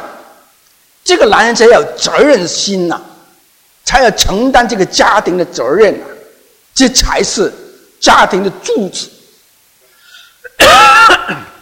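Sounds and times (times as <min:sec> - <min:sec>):
speech: 0:01.1 - 0:03.1, 0:03.9 - 0:06.1, 0:06.8 - 0:09.2, 0:11.1 - 0:11.5
harsh cough from a throat irritated by allergy: 0:10.4 - 0:11.6.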